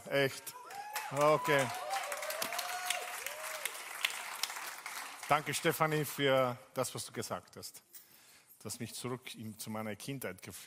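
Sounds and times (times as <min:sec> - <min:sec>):
speech: 0:00.1 - 0:01.8, 0:05.3 - 0:07.9, 0:08.6 - 0:10.6
applause from a group: 0:00.5 - 0:06.0.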